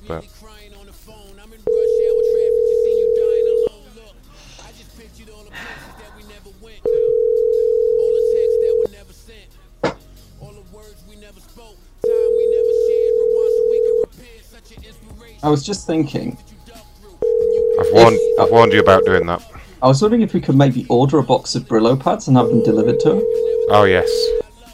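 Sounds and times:
speech: 0:00.1 - 0:00.7, 0:14.6 - 0:16.5, 0:17.9 - 0:24.4
ringback tone of an outgoing call to a cell phone: 0:01.7 - 0:03.7, 0:06.8 - 0:08.9, 0:12.0 - 0:14.1, 0:17.2 - 0:19.3, 0:22.3 - 0:24.4.

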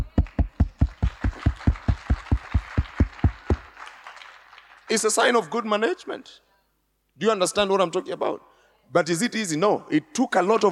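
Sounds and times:
person clapping: 0:00.1 - 0:04.8
speech: 0:04.9 - 0:06.5, 0:07.2 - 0:10.7.

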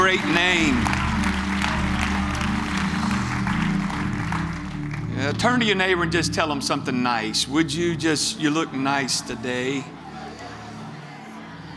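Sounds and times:
audience clapping hands in praise: 0:00.0 - 0:05.8
low musical tones: 0:00.0 - 0:11.7
speech: 0:00.2 - 0:00.9, 0:05.3 - 0:10.0.

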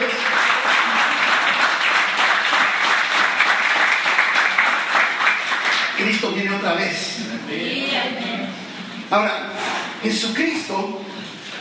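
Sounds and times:
audience applause: 0:00.0 - 0:06.3
speech: 0:06.5 - 0:08.4, 0:09.1 - 0:11.1.

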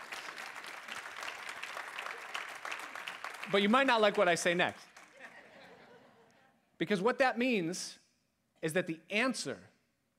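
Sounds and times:
crowd clapping: 0:00.0 - 0:05.5
speech: 0:03.5 - 0:04.9, 0:06.8 - 0:08.0, 0:08.6 - 0:10.1
laughter: 0:05.1 - 0:06.6.

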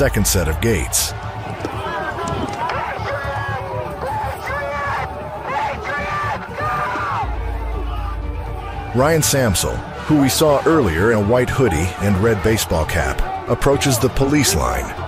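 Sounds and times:
speech: 0:00.0 - 0:01.7, 0:09.0 - 0:15.0
crowd shouting: 0:00.0 - 0:15.0.

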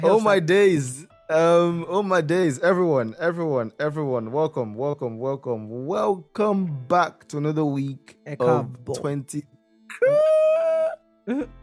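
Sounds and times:
speech: 0:00.0 - 0:10.4, 0:11.2 - 0:11.6
person screeching: 0:09.9 - 0:11.5.

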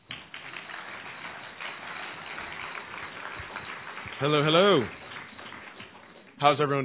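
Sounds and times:
audience applause: 0:00.0 - 0:06.8
speech: 0:04.2 - 0:05.0, 0:06.4 - 0:06.8.

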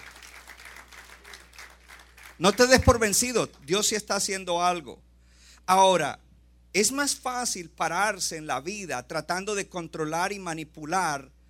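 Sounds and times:
crowd applauding: 0:00.0 - 0:03.8
speech: 0:02.4 - 0:05.1, 0:05.7 - 0:11.4.

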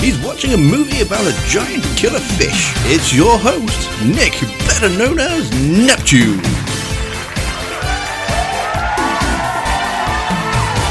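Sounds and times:
speech: 0:00.0 - 0:06.6
crowd cheering and whooping: 0:05.8 - 0:10.8.

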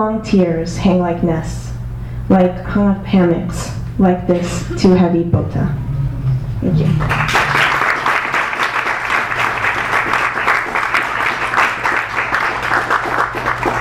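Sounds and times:
speech: 0:00.0 - 0:01.7, 0:02.3 - 0:05.8, 0:06.6 - 0:07.4
audience applause after a poem: 0:06.8 - 0:13.7.

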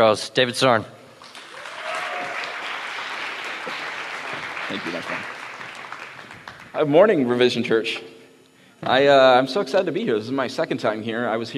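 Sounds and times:
speech: 0:00.0 - 0:01.0, 0:04.7 - 0:05.4, 0:06.8 - 0:08.1, 0:08.8 - 0:11.5
audience applause welcoming a speaker at a church gathering: 0:01.3 - 0:06.9.

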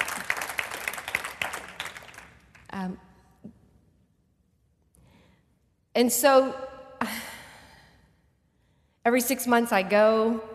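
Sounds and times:
crowd clapping: 0:00.0 - 0:02.7
speech: 0:02.8 - 0:03.6, 0:06.0 - 0:07.2, 0:09.1 - 0:10.5.

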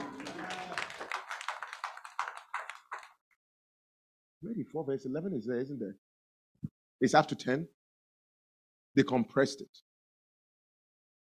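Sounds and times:
clapping: 0:00.0 - 0:03.2
speech: 0:04.4 - 0:07.8, 0:09.0 - 0:09.9.

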